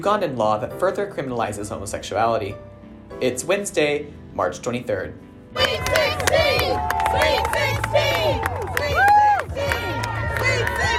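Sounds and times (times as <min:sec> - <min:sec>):
speech: 0:00.0 - 0:08.5
large crowd cheering and shouting: 0:05.6 - 0:10.9.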